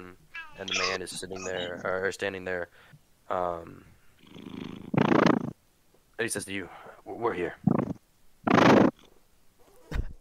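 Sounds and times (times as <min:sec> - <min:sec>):
speech: 0:00.0 - 0:04.6, 0:06.2 - 0:07.8
cat purring after climbing onto a person: 0:00.4 - 0:01.9, 0:04.2 - 0:05.5, 0:07.6 - 0:09.0.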